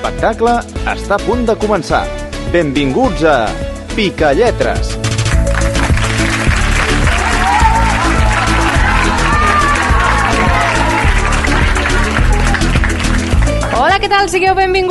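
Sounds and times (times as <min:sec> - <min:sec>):
speech: 0:00.0 - 0:05.0, 0:14.1 - 0:14.8
droning musical backdrop: 0:05.0 - 0:14.6
audience applause: 0:05.2 - 0:13.9
crowd cheering and whooping: 0:06.1 - 0:13.4.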